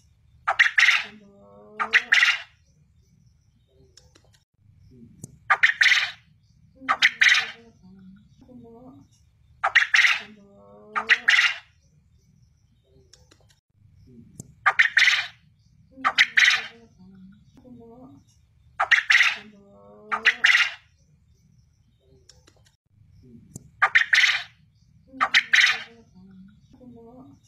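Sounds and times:
quail calling in rasping triple phrases: 0:00.5 - 0:02.6, 0:05.5 - 0:07.8, 0:09.6 - 0:11.7, 0:14.6 - 0:15.4, 0:16.0 - 0:16.9, 0:18.8 - 0:20.9, 0:23.8 - 0:26.1.

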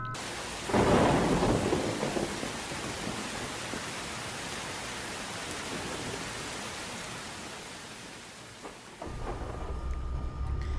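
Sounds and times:
rushing roar of water: 0:00.2 - 0:10.0
heavy boom of thunder: 0:00.7 - 0:03.4, 0:09.0 - 0:10.5.

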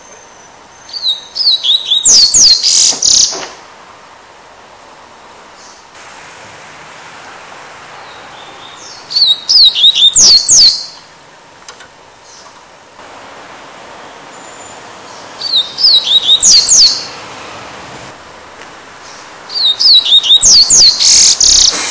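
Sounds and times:
Double-collared Seedeater song of high sweeping whistled notes: 0:00.0 - 0:03.4, 0:08.0 - 0:11.0, 0:14.3 - 0:17.2, 0:19.1 - 0:21.8.

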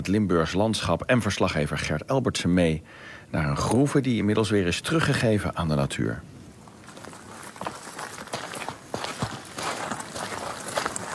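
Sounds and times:
speech: 0:00.0 - 0:06.3
steady hiss: 0:00.0 - 0:11.1
footsteps crunching in a former quarry: 0:06.6 - 0:11.1.

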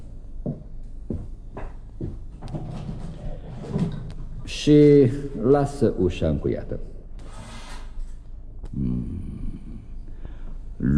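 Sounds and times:
wooden knocks and rattles of window being opened: 0:00.5 - 0:04.4
speech: 0:04.6 - 0:06.9.

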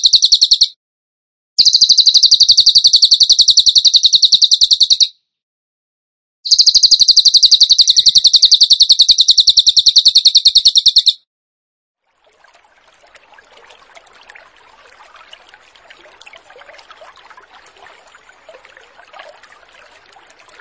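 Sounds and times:
bird song of piercing high chirps: 0:00.0 - 0:00.8, 0:01.6 - 0:05.2, 0:06.5 - 0:11.2, 0:14.6 - 0:20.6.

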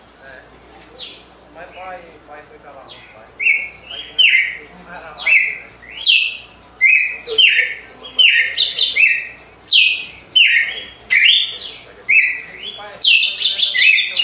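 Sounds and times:
Red-cowled cardinal whistling: 0:03.4 - 0:14.2.

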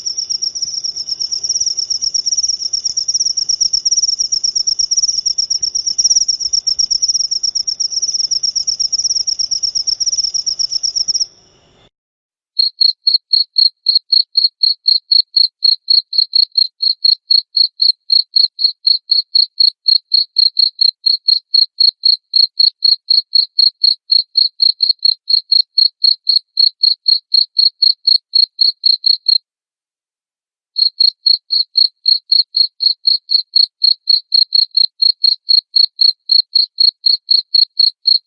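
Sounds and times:
cricket chirping high-pitched: 0:00.0 - 0:11.9, 0:12.6 - 0:29.4, 0:30.8 - 0:38.2.

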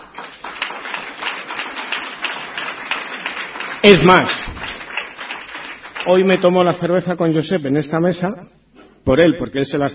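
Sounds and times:
audience applause: 0:00.0 - 0:06.5
speech: 0:03.8 - 0:04.5, 0:06.0 - 0:09.9.

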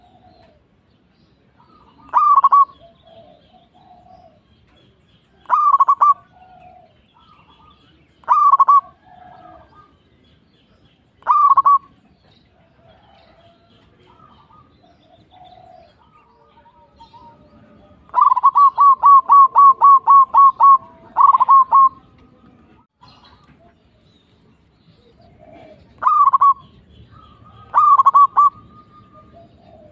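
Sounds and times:
zebra dove cooing: 0:00.0 - 0:00.7, 0:01.6 - 0:04.5, 0:05.4 - 0:10.0, 0:11.2 - 0:12.0, 0:12.8 - 0:22.1, 0:25.0 - 0:29.9.

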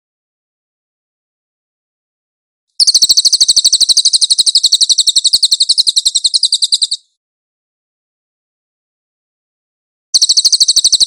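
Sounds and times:
singing a rapid high trill: 0:02.8 - 0:07.2, 0:10.2 - 0:11.0.

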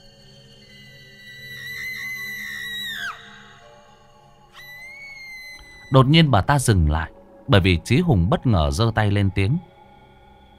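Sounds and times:
woman's shrill piercing shriek: 0:00.9 - 0:03.9, 0:04.5 - 0:06.0
speech: 0:05.9 - 0:09.7.

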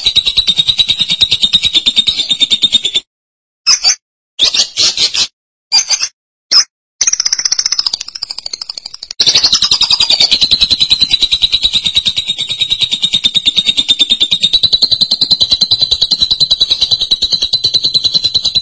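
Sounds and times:
lovebird buzzy pulsed trill: 0:00.0 - 0:03.0, 0:03.7 - 0:18.6.

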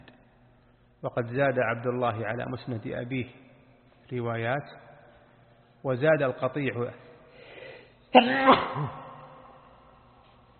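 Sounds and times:
speech: 0:01.0 - 0:03.5, 0:04.1 - 0:04.8, 0:05.8 - 0:07.0, 0:08.1 - 0:09.0
sneeze during a quiet lecture: 0:08.1 - 0:09.3.

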